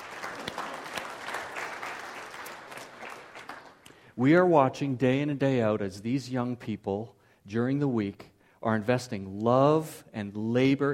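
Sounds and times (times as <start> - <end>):
audience clapping: 0.0 - 4.0
speech: 4.2 - 10.9.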